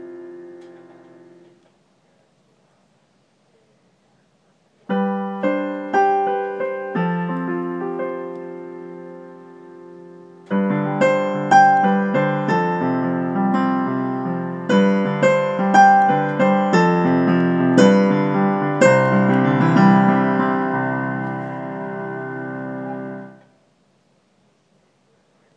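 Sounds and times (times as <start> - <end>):
piano: 0.0 - 1.7, 4.8 - 23.6
guitar: 4.9 - 23.6.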